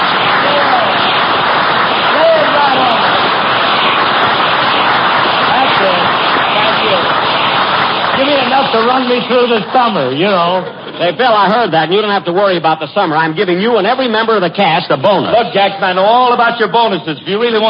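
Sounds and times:
audience applause: 0:00.0 - 0:12.4
speech: 0:09.0 - 0:17.6.

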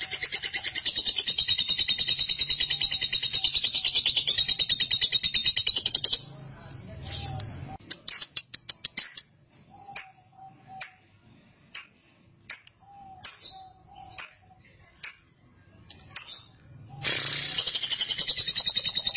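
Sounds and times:
canary master song for training canaries: 0:00.0 - 0:15.2, 0:15.9 - 0:19.1.

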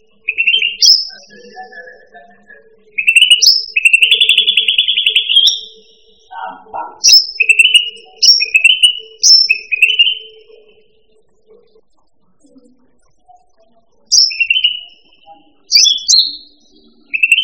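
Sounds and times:
bird song with short bright high whistled and chirping notes: 0:00.0 - 0:06.3, 0:06.9 - 0:10.9, 0:14.0 - 0:17.4.

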